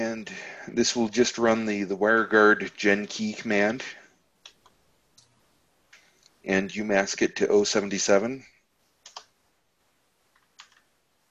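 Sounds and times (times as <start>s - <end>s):
speech: 0.2s - 4.0s, 6.4s - 8.5s
keystrokes on a computer keyboard: 9.0s - 9.3s, 10.4s - 10.9s.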